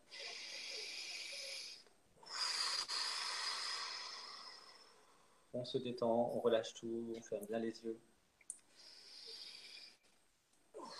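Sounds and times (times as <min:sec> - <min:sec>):
deep breath: 0:00.0 - 0:05.6, 0:08.7 - 0:10.1
speech: 0:05.5 - 0:08.1.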